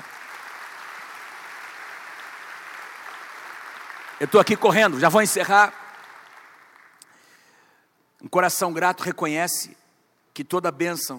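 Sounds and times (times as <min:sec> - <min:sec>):
audience applause: 0:00.0 - 0:07.0
speech: 0:04.2 - 0:05.8, 0:08.3 - 0:09.8, 0:10.4 - 0:11.1.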